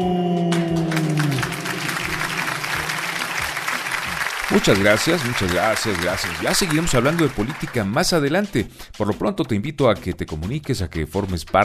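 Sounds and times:
crowd applause: 0:00.5 - 0:08.1
speech: 0:04.6 - 0:11.6.

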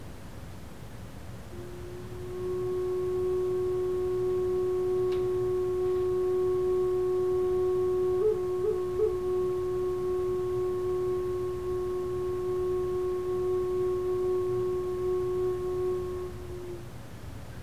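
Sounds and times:
flute playing: 0:01.5 - 0:16.8.

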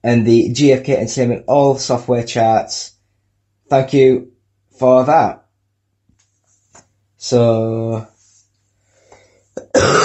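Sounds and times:
speech: 0:00.0 - 0:02.9, 0:03.7 - 0:05.4, 0:07.2 - 0:08.1, 0:09.8 - 0:10.0
person coughing: 0:09.6 - 0:10.0.

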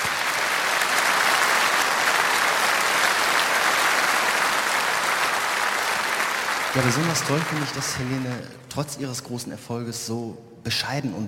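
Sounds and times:
audience applause: 0:00.0 - 0:08.7
speech: 0:06.8 - 0:11.2.

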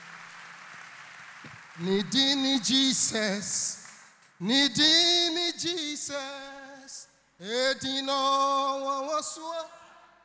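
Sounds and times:
audience clapping as an offering: 0:00.0 - 0:04.1
speech: 0:01.4 - 0:03.8, 0:04.4 - 0:09.8.

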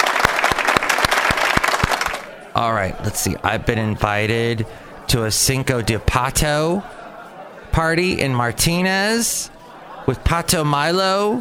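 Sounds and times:
clapping sound effect: 0:00.0 - 0:02.3
speech: 0:02.6 - 0:07.0, 0:07.7 - 0:11.3
laughter: 0:05.7 - 0:11.3.

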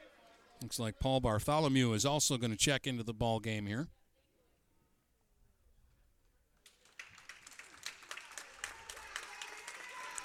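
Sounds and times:
speech: 0:00.6 - 0:04.0
crowd applause at basketball game: 0:06.7 - 0:10.2.

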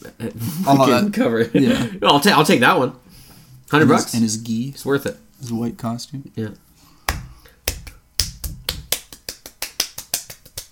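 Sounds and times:
speech: 0:00.2 - 0:03.0, 0:03.7 - 0:06.7
quick hand clap: 0:07.0 - 0:10.7.

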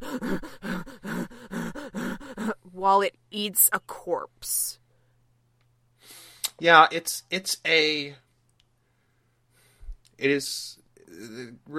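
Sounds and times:
voice imitating a pug struggling to breathe: 0:00.0 - 0:02.8
speech: 0:02.8 - 0:04.7, 0:06.6 - 0:08.2, 0:10.2 - 0:11.7.

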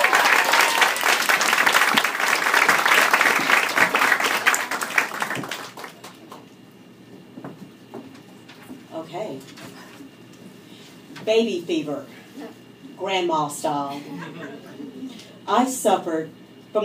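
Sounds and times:
audience applause: 0:00.0 - 0:06.4
speech: 0:11.3 - 0:12.2, 0:13.0 - 0:14.3, 0:15.5 - 0:16.8.

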